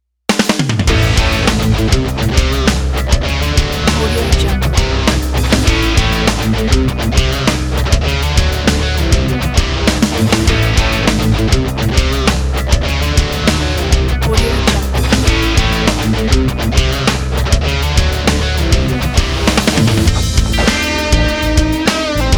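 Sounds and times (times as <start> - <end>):
overdrive distortion: 0.9 - 22.3.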